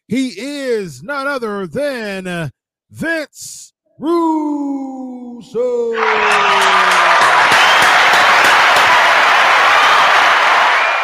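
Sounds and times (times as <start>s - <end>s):
speech: 0.1s - 7.4s
round of applause: 6.0s - 11.0s.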